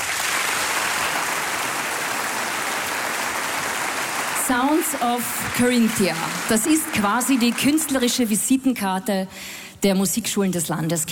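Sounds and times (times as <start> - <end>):
audience applause in a hall: 0.0 - 8.3
speech: 4.5 - 11.1.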